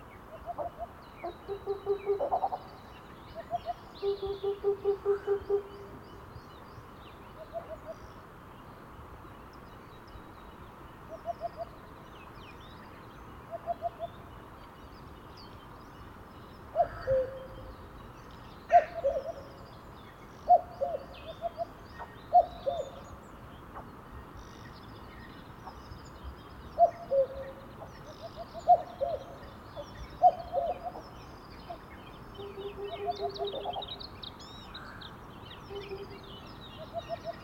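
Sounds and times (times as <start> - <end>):
songbird chatter: 0.0 - 37.4
cuckoo calling: 0.4 - 2.7, 3.4 - 6.0, 16.8 - 17.7, 18.7 - 19.6, 20.4 - 23.0, 26.8 - 27.6, 28.2 - 31.1, 32.4 - 34.0, 35.7 - 37.4.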